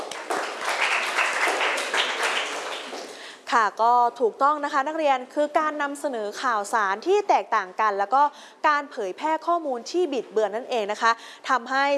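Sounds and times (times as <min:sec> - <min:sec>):
students clapping: 0:00.0 - 0:03.3
speech: 0:03.5 - 0:11.9.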